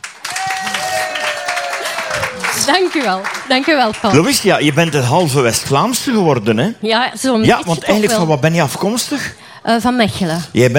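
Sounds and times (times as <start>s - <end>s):
audience applause: 0.0s - 5.7s
speech: 2.7s - 10.7s.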